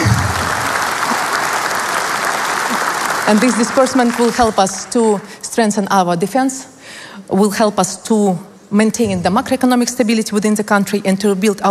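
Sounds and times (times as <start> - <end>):
applause: 0.0 - 4.9
speech: 3.3 - 11.6.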